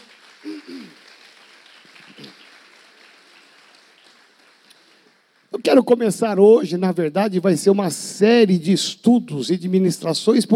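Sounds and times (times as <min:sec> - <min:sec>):
audience clapping steadily: 0:00.0 - 0:05.8
speech: 0:05.6 - 0:10.5.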